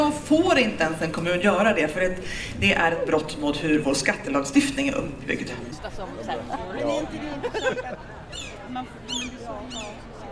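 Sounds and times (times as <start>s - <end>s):
speech: 0.2s - 10.0s
laughter: 5.9s - 8.4s
gulls calling: 6.9s - 10.1s.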